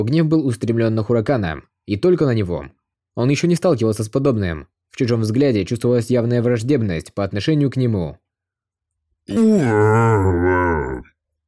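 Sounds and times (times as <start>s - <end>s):
speech: 0.0s - 8.2s, 9.3s - 11.1s
forest bear roaring: 9.3s - 11.1s.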